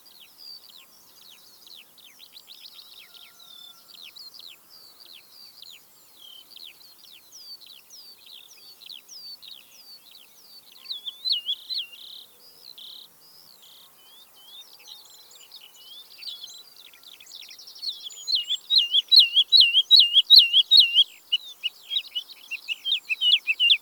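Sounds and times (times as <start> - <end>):
woodlark birdsong: 17.6 - 23.7.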